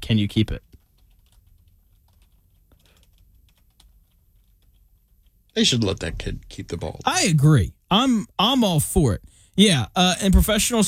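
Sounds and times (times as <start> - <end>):
speech: 0.0 - 0.7, 5.6 - 10.8
typing on a computer keyboard with cold stiff fingers: 0.5 - 5.6.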